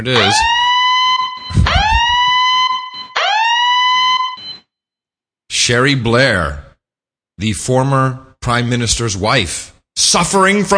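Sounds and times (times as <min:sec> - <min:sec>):
speech: 0:00.0 - 0:00.7, 0:05.6 - 0:06.6, 0:07.4 - 0:10.7
electronic alarm siren sound effect: 0:00.0 - 0:04.7.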